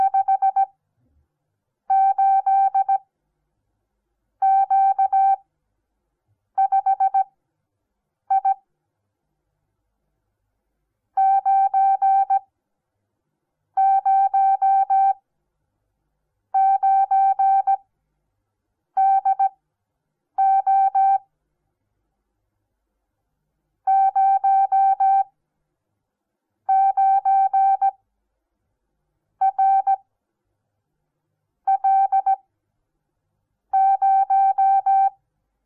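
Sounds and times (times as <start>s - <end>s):
morse code beeps: 0.0s - 0.7s, 1.9s - 3.0s, 4.4s - 5.4s, 6.6s - 7.3s, 8.3s - 8.6s, 11.2s - 12.4s, 13.8s - 15.2s, 16.6s - 17.8s, 19.0s - 19.5s, 20.4s - 21.2s, 23.9s - 25.3s, 26.7s - 28.0s, 29.4s - 30.0s, 31.7s - 32.4s, 33.8s - 35.1s.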